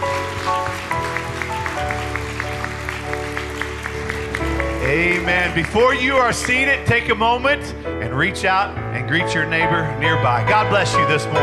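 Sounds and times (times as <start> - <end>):
large crowd clapping hands in praise: 0.0 - 7.2
organ or keyboard chords: 0.0 - 11.4
speech: 4.9 - 11.4.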